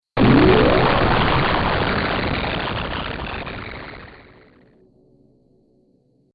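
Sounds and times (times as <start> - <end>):
sci-fi teleport device exploding: 0.2 - 4.6.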